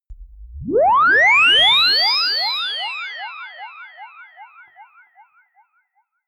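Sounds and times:
quick UFO liftoff: 0:00.0 - 0:02.6.

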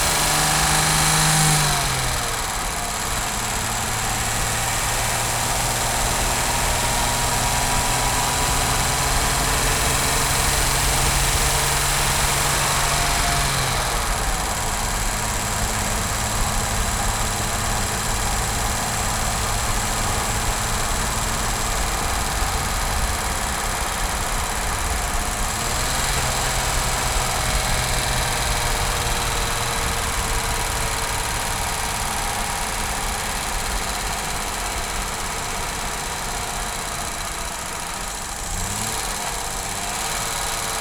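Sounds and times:
Jaguar E-Type car engine driving: 0:00.0 - 0:40.7.

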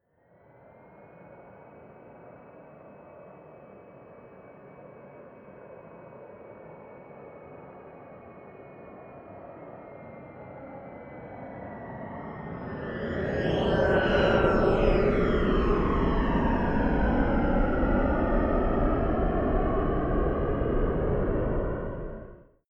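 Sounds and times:
distant Bombardier private plane flyby: 0:12.2 - 0:22.4.

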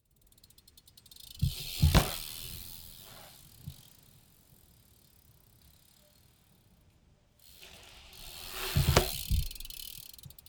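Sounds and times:
BMX bike maneuver on a ramp: 0:00.3 - 0:06.8, 0:07.4 - 0:10.4.

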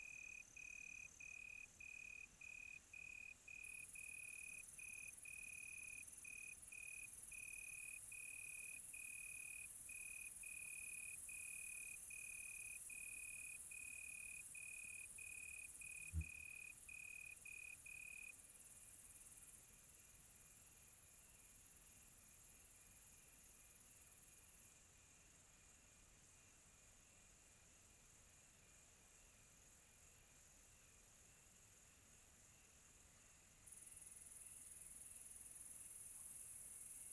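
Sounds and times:
high continuous insect hiss: 0:00.0 - 0:18.3, 0:32.5 - 0:37.1
cricket chirping: 0:00.0 - 0:20.2, 0:22.0 - 0:37.1.

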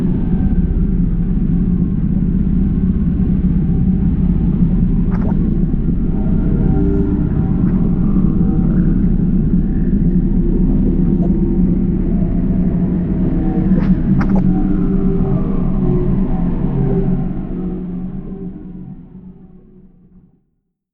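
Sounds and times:
drone: 0:00.0 - 0:20.1.

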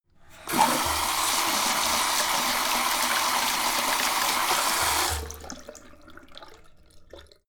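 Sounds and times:
sink tap running fast: 0:00.3 - 0:05.5.

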